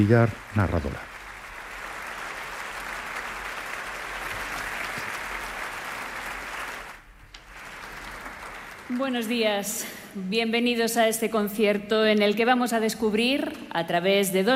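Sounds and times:
speech: 0.0 - 1.1, 8.9 - 14.5
audience applause in concert hall: 0.0 - 9.5.

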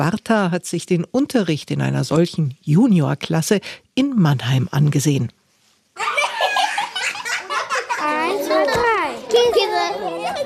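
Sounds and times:
speech: 0.0 - 5.4
young children in a classroom shouting and laughing: 6.0 - 10.4.

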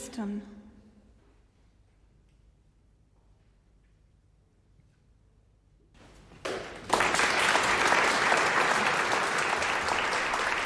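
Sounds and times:
concert audience applause: 6.4 - 10.6.

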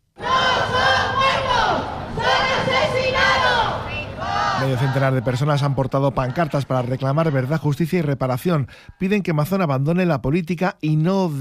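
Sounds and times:
protest crowd chanting murderer: 0.2 - 7.7
speech: 4.6 - 11.3.

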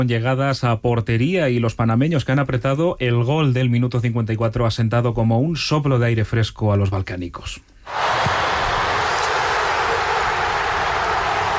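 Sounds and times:
speech: 0.0 - 8.3
football fans cheering in the stands: 7.9 - 11.5.

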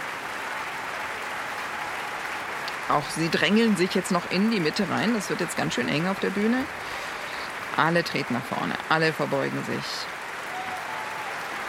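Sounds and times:
opera audience applauding an Australian composer at the curtain call: 0.0 - 11.6
speech: 2.9 - 7.0, 7.8 - 10.2.

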